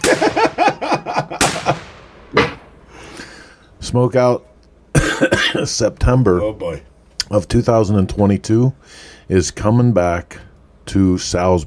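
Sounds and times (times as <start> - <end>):
gunshot sound effect fired in place of a drum roll: 0.0 - 0.6, 1.3 - 2.8
laughter: 0.0 - 1.9
speech: 3.9 - 4.5, 5.2 - 11.6.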